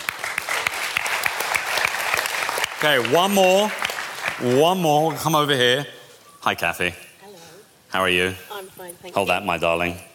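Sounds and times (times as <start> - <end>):
audience applause: 0.0 - 4.8
speech: 2.8 - 3.8, 4.4 - 7.0, 7.9 - 10.1.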